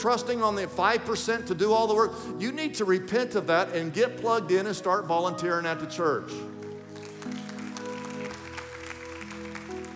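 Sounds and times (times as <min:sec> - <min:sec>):
speech: 0:00.0 - 0:06.6
sparse audience clapping: 0:06.5 - 0:09.9.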